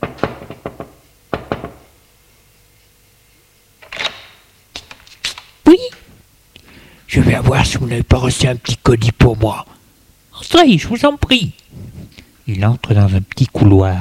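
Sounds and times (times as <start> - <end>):
knocking on a door: 0.0 - 1.9
speech: 7.2 - 9.7, 10.4 - 11.9, 12.5 - 13.9.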